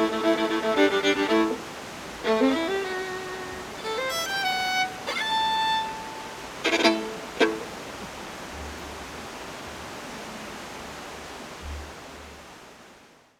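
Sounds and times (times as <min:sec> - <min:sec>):
violin playing: 0:00.0 - 0:07.7.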